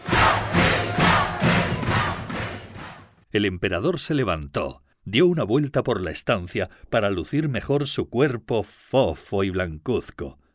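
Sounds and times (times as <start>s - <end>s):
crowd shouting cheers of praise: 0.0s - 3.0s
speech: 3.4s - 10.4s.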